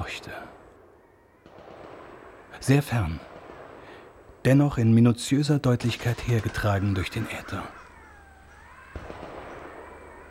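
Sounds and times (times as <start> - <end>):
distant machine gun fire: 1.4 - 2.5, 5.8 - 7.4, 8.7 - 10.2
speech: 2.6 - 3.3, 4.4 - 7.8.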